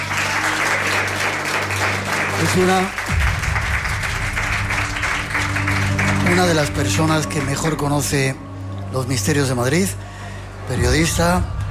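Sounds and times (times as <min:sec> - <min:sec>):
audience applause: 0:00.0 - 0:07.5
speech: 0:02.6 - 0:03.0, 0:06.4 - 0:10.1, 0:10.7 - 0:11.6.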